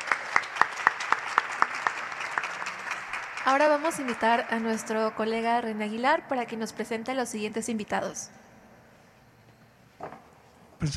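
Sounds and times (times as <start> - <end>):
audience applause: 0.0 - 6.1
speech: 3.4 - 8.4.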